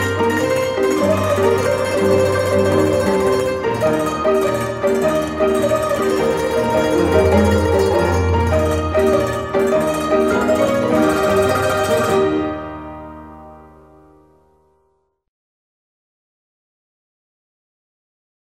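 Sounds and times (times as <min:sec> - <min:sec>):
street piano: 0:00.0 - 0:14.8.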